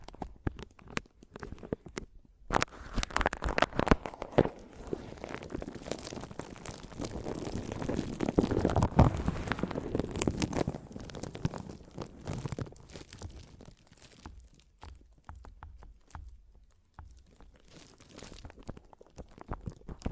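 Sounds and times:
crackly rubbing on a microphone: 2.5s - 20.1s
sharp taps and clicks on a microphone: 14.2s - 17.7s.

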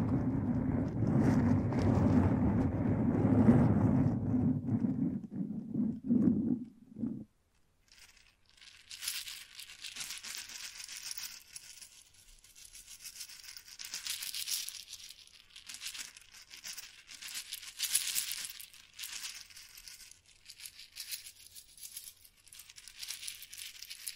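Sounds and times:
heavy brushing against a microphone: 0.0s - 7.3s.

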